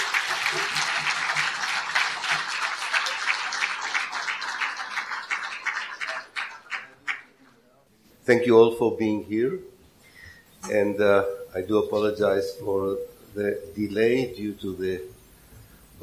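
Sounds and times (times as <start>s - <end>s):
audience applause: 0.0s - 7.5s
speech: 8.3s - 9.7s, 10.7s - 15.1s.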